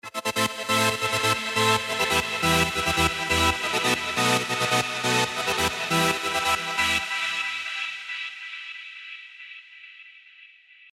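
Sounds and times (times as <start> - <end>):
gated trance synth: 0.2 - 9.2.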